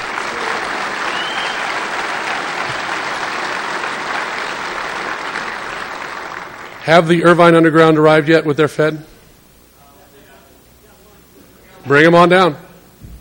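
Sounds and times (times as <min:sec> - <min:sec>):
audience applause: 0:00.0 - 0:07.1
speech: 0:06.9 - 0:09.1, 0:11.9 - 0:12.7.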